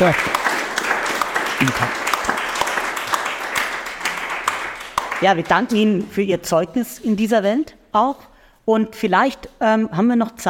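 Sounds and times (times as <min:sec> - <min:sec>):
speech: 0:00.0 - 0:00.4, 0:01.6 - 0:02.0, 0:05.2 - 0:10.4
audience applause: 0:00.0 - 0:05.4.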